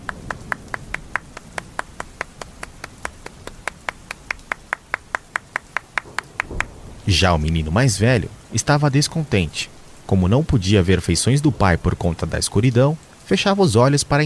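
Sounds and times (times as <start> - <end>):
single pair of hands clapping: 0.0 - 6.8
speech: 7.1 - 14.2.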